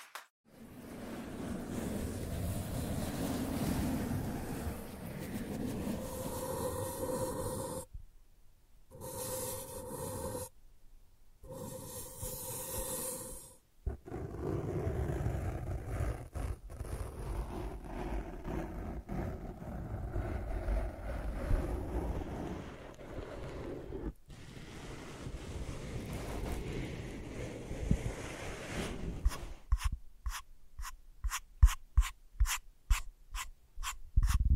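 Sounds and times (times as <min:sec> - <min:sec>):
sensitive tracing scratchy rubbing: 0:00.8 - 0:07.9, 0:08.9 - 0:10.5, 0:11.5 - 0:34.5.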